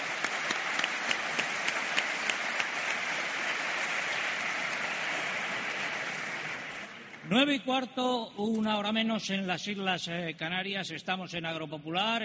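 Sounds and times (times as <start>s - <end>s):
audience applause: 0.0s - 7.2s
speech: 7.3s - 12.2s.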